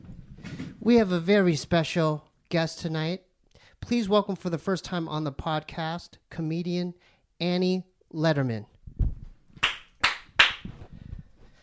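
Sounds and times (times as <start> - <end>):
speech: 0.8 - 8.7
single hand clap: 9.6 - 10.7.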